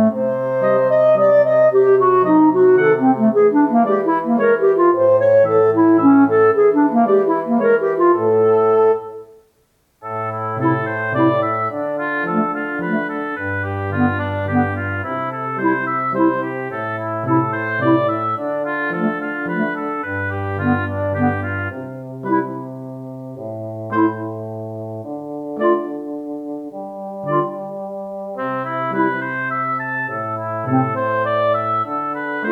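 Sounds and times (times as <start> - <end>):
fortissimo wind instruments playing without flute: 0.0 - 9.4, 10.0 - 32.5.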